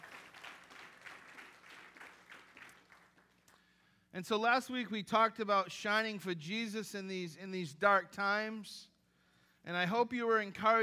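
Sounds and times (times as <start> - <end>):
audience applause: 0.0 - 3.5
speech: 4.2 - 8.9, 9.6 - 10.8.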